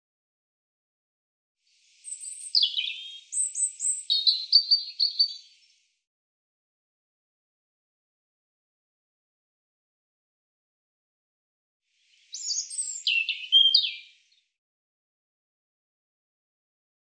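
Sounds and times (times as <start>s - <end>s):
European robin song: 1.7s - 6.0s, 12.0s - 14.6s.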